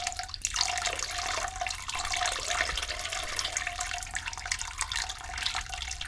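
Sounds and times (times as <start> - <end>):
person urinating: 0.0 - 6.0.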